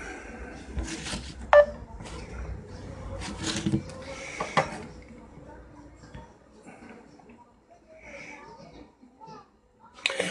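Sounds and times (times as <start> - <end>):
faint voices: 0.0 - 10.2
touch-tone beeps of a phone number being dialed: 1.5 - 1.8.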